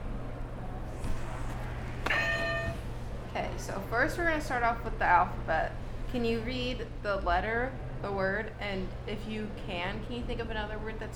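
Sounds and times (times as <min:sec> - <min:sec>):
steady low hum: 0:00.0 - 0:04.0
game buzzer: 0:02.1 - 0:02.8
speech: 0:03.7 - 0:11.1.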